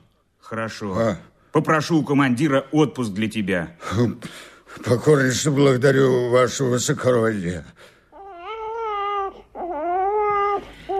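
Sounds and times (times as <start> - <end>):
speech: 0.5 - 7.9
baby crying: 8.1 - 10.9.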